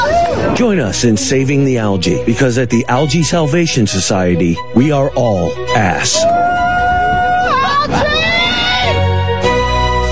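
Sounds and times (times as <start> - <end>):
crowd screaming: 0.0 - 0.6, 6.0 - 9.2
speech: 0.6 - 6.4.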